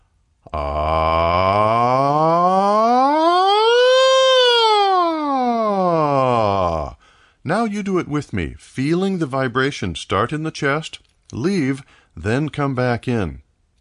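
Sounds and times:
speech: 0.5 - 0.8, 7.6 - 13.4
vocal siren slide exercise: 1.6 - 6.3.

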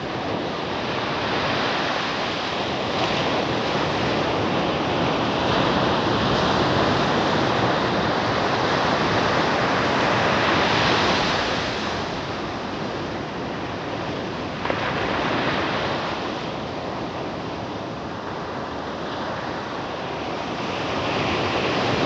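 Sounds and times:
ocean waves crashing: 0.0 - 22.0.

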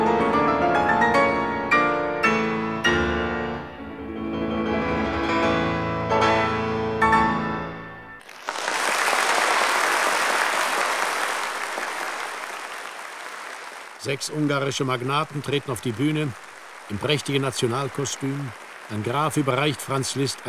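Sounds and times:
piano chords: 0.0 - 8.3
large crowd applauding and cheering: 8.2 - 20.4
speech: 14.1 - 20.4.

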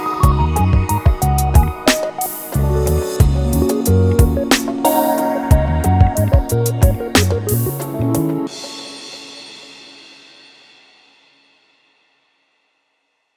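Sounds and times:
jazzy tune: 0.0 - 8.7.

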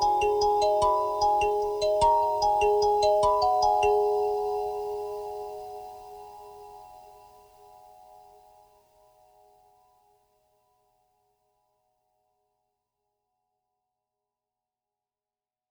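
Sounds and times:
kalimba playing: 0.0 - 6.0.

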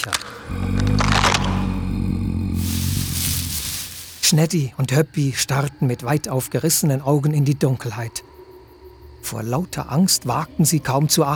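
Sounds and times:
low growl: 0.0 - 4.3
rustling: 2.4 - 4.5
twigs cracking in the undergrowth: 2.5 - 4.5
speech: 4.3 - 8.3, 9.2 - 11.3.

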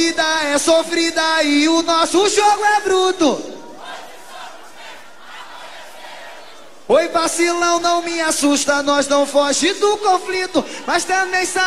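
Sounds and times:
speech: 0.0 - 3.6, 6.9 - 11.6
large concert crowd shouting in response: 3.5 - 7.1, 9.9 - 11.6.

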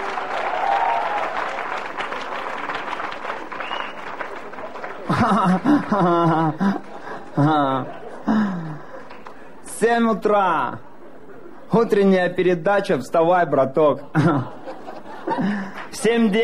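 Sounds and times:
audience applause: 0.0 - 9.4
faint crowd sounds: 0.0 - 16.4
laughter: 3.7 - 9.6, 10.6 - 12.1, 13.8 - 16.1
speech: 5.1 - 6.8, 7.4 - 8.6, 9.8 - 10.9, 11.7 - 14.6, 15.4 - 16.4.

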